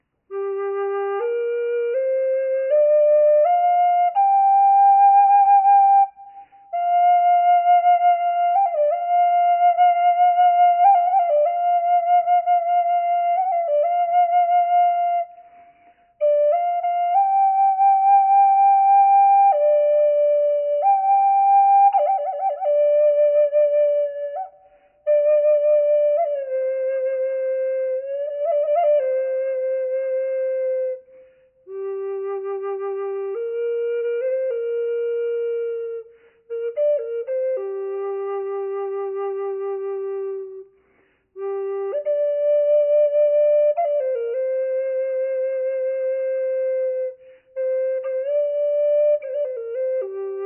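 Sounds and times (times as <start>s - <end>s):
flute with reverb: 0.0s - 50.4s.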